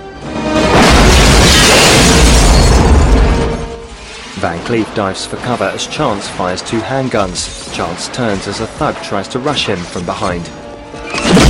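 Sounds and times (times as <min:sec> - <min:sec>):
grenade explosion in an action film scene: 0:00.5 - 0:03.8, 0:11.2 - 0:11.4
speech: 0:04.4 - 0:10.6.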